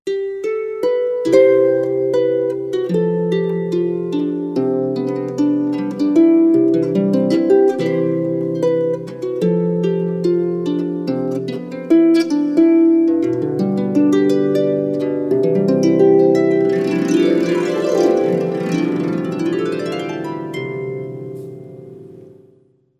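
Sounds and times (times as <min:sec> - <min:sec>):
harp playing wedding recessional music: 0:00.1 - 0:22.5.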